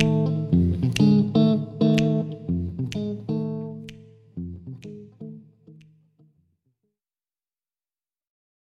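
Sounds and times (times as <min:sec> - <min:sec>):
guitar: 0:00.0 - 0:06.9.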